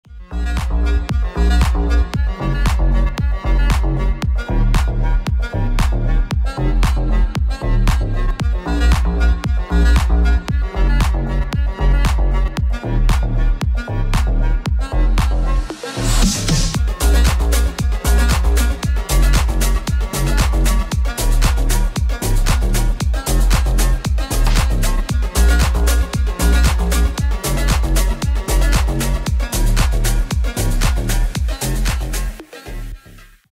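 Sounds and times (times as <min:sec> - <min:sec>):
saxophone original mix: 0:00.0 - 0:33.4.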